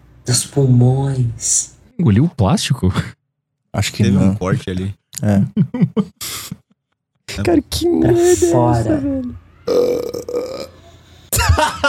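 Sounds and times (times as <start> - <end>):
speech: 0.3 - 6.6, 7.4 - 10.7
long low gravelly burp sound effect: 9.7 - 10.8.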